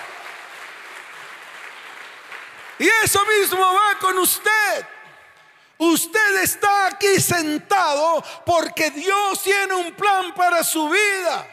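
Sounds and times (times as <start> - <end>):
audience applause: 0.0 - 3.3
speech: 2.8 - 5.0, 5.8 - 11.5.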